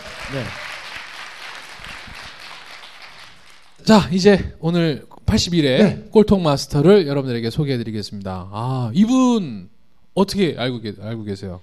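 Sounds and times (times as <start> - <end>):
audience applause: 0.0 - 3.8
speech: 0.3 - 0.7, 3.9 - 11.6.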